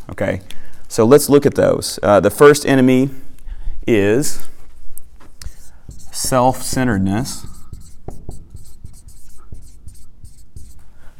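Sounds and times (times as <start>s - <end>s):
speech: 0.2s - 3.2s, 3.9s - 4.5s, 6.2s - 7.5s
handwriting strokes scratching across a surface: 5.3s - 10.8s.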